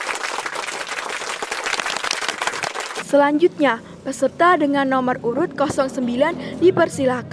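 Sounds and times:
enthusiastic applause from competition audience: 0.0s - 3.0s
speech: 3.1s - 7.3s.

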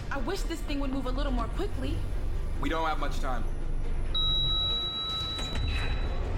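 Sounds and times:
speech: 0.2s - 3.6s
electronic beep as an elevator button is pressed: 4.1s - 6.2s.

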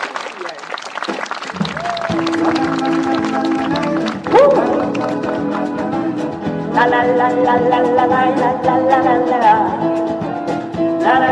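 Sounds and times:
audience applause: 0.0s - 5.9s
speech: 6.8s - 10.2s, 11.0s - 11.3s.

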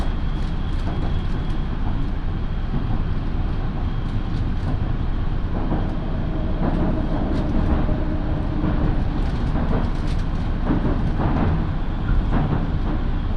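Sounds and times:
local train on the Minobu Line rumbling: 0.0s - 13.3s
thin high whine: 5.1s - 10.1s.

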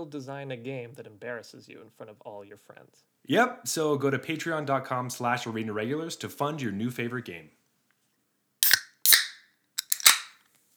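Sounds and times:
speech: 0.0s - 7.6s
beer bottle opening: 8.6s - 10.3s.

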